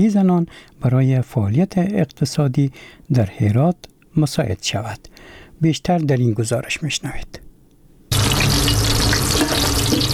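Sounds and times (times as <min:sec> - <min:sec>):
speech: 0:00.0 - 0:07.4
food frying in a women's restaurant kitchen in Herat: 0:08.1 - 0:10.1
stirring: 0:08.6 - 0:10.1.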